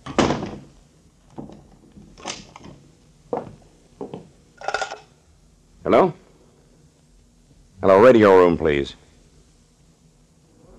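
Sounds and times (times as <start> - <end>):
cabin door shutting with a loud thud: 0.0 - 0.7
speech: 5.9 - 6.2, 8.1 - 9.0.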